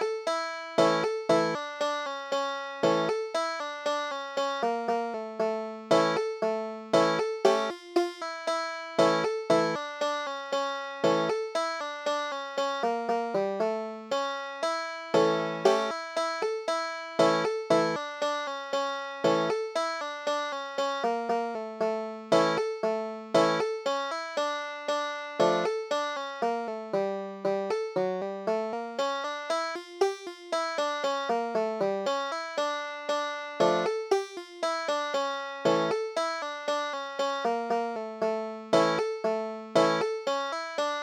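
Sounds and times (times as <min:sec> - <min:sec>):
banjo: 0:00.0 - 0:41.0.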